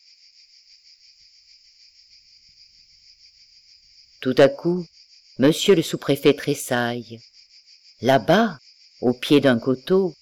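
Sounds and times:
thousands of cicadas chirring in dust-covered elm trees along a roadside: 0.0s - 10.2s
speech: 4.2s - 7.3s, 8.0s - 10.2s.

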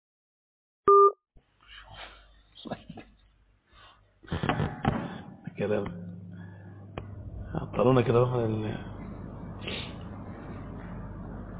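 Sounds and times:
telephone beep: 0.9s - 1.2s
speech: 2.6s - 2.9s, 5.6s - 6.1s, 7.5s - 8.9s.

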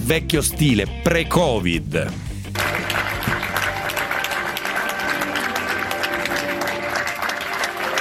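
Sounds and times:
speech: 0.1s - 2.3s
large crowd applauding at the funeral of the mayor in Saviano near Naples Italy: 2.6s - 7.9s.

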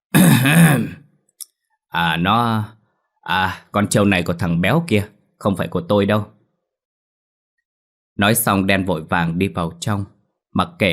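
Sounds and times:
person clearing throat: 0.1s - 1.1s
speech: 0.4s - 1.0s, 1.9s - 6.4s, 8.2s - 10.9s.

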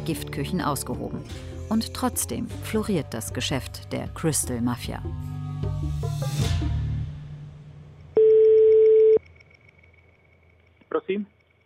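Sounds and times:
speech: 0.0s - 6.8s
electronic telephone dialing blips: 8.2s - 9.2s
steady single-pitched telephone tone as a call to Prague connects: 8.2s - 9.2s.

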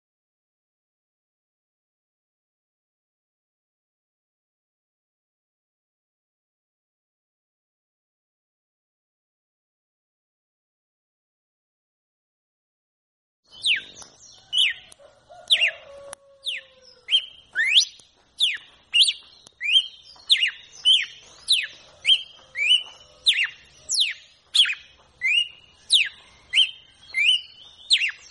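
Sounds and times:
red-cowled cardinal whistled song: 13.5s - 28.3s.

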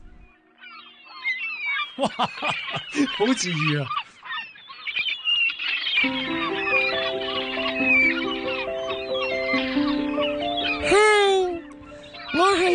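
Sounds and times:
seagulls crying: 0.3s - 12.7s
speech: 2.0s - 4.0s, 6.0s - 6.4s
sustained musical tones: 6.0s - 12.7s.

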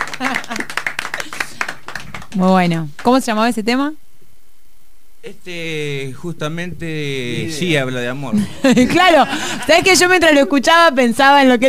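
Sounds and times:
laughter: 0.0s - 0.8s, 7.3s - 10.5s
applause: 0.0s - 3.1s
speech: 2.4s - 4.0s, 5.2s - 11.6s.

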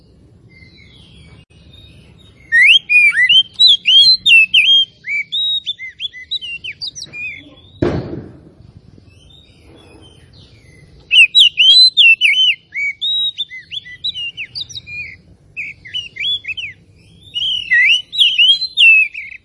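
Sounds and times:
Oriental magpie-robin singing: 0.0s - 7.8s, 9.0s - 19.4s
sharp knock: 7.8s - 8.6s.

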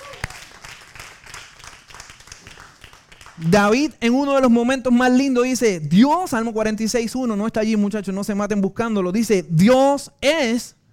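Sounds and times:
church congregation applause during a sermon: 0.0s - 3.5s
speech: 3.4s - 10.8s.

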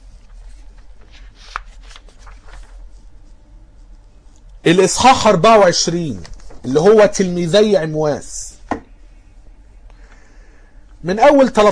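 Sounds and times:
Bible pages turning to the Gospel of Luke: 0.0s - 4.6s, 6.0s - 7.2s
speech: 4.6s - 8.3s, 11.0s - 11.7s.

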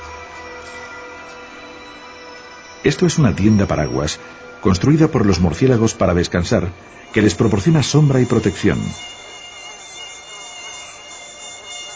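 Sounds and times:
mosquitoes whining around a palm-leaf bat tent roost: 0.0s - 11.9s
speech: 2.8s - 9.2s.

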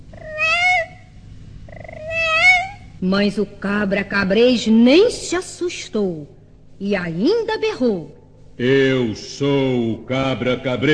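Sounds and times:
low rumble: 0.0s - 10.9s
cat meowing: 0.2s - 1.0s, 1.7s - 2.8s
speech: 3.0s - 10.9s.

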